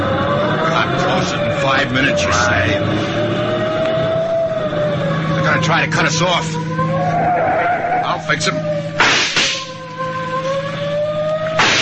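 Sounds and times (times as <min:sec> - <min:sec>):
engine whine: 0:00.0 - 0:11.7
speech: 0:01.8 - 0:03.4, 0:05.5 - 0:07.5, 0:08.3 - 0:09.2
gunshots during a police car chase: 0:09.0 - 0:09.6, 0:11.6 - 0:11.7.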